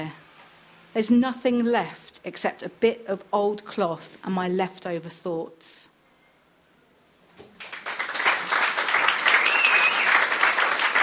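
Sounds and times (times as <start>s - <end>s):
speech: 1.0s - 5.9s
audience applause: 7.6s - 11.0s
whistle or cheer: 9.2s - 10.4s.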